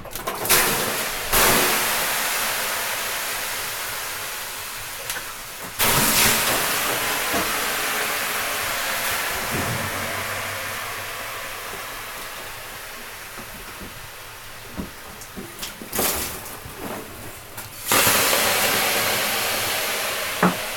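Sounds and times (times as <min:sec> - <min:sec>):
sauna steam in Finland: 0:00.4 - 0:20.7.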